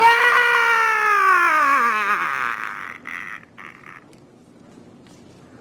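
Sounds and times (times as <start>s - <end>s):
person shouting: 0.0s - 3.8s.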